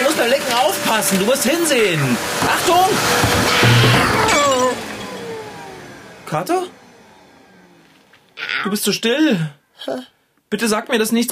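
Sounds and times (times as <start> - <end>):
speech: 0.2 - 4.5, 6.3 - 6.8, 8.6 - 11.3
bicycle crashing into a table: 2.4 - 5.4.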